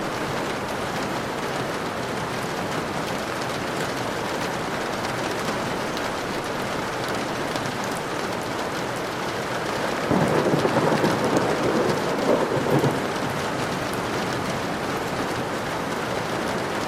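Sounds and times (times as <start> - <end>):
heavy rain: 0.0 - 16.8
thunder: 10.0 - 13.4.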